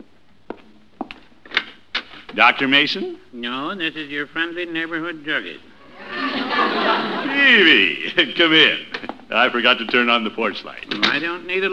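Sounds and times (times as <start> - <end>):
speech: 2.3 - 5.7, 6.7 - 11.7
laughter: 5.8 - 8.8
front door being opened: 10.8 - 11.3.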